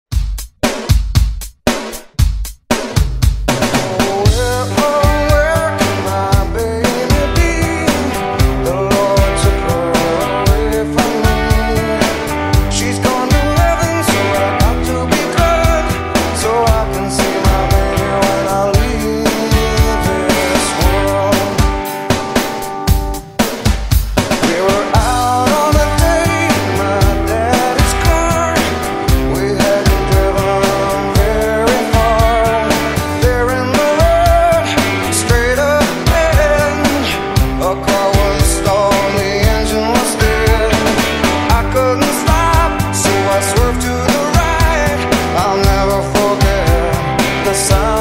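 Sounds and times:
drum beat: 0:00.0 - 0:47.9.

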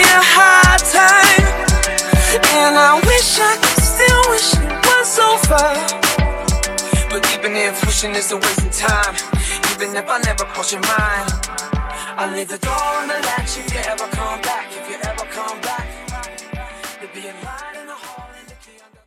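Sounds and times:
alternative pop rock drum beat at 100 BPM: 0:00.0 - 0:12.0, 0:12.6 - 0:16.8.

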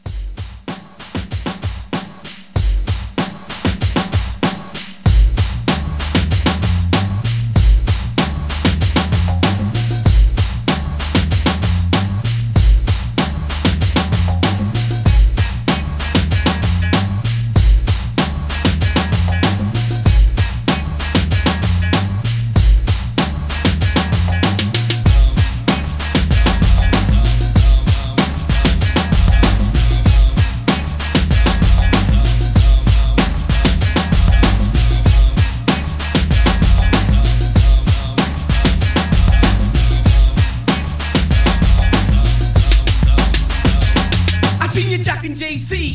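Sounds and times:
80s pop hip hop drum beat: 0:00.0 - 0:45.8.

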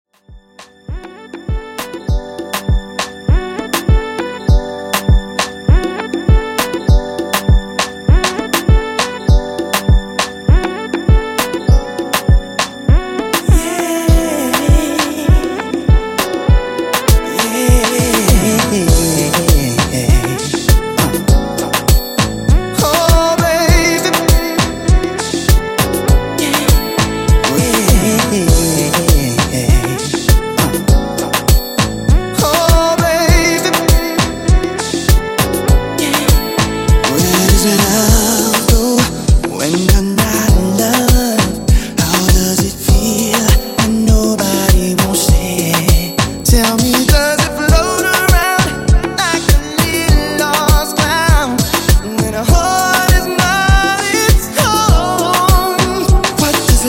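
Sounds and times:
90s Afro beat at 100 BPM: 0:00.2 - 0:56.8.

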